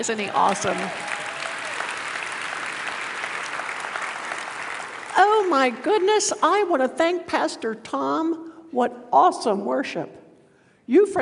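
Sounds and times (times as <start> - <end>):
speech: 0.0 - 1.1, 5.2 - 10.2, 10.9 - 11.2
audience applause: 0.2 - 5.8.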